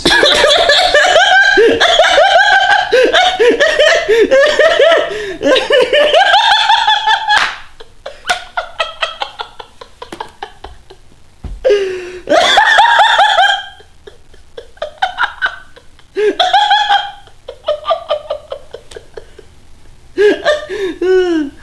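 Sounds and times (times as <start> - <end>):
person laughing: 0.0 - 19.5, 20.2 - 21.6.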